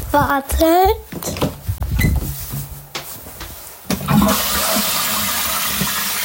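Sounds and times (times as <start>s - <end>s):
speech: 0.1s - 1.1s
toilet flushing: 3.9s - 6.2s.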